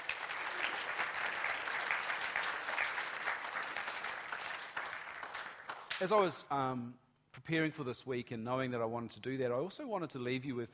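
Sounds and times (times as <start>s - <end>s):
audience applause: 0.0s - 6.0s
speech: 6.0s - 10.7s.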